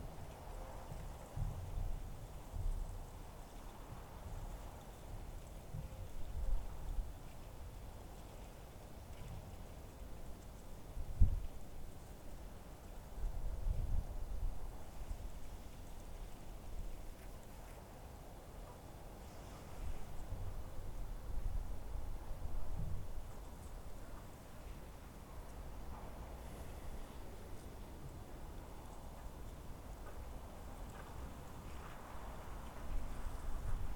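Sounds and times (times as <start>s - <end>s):
desert wind: 0.0s - 33.9s.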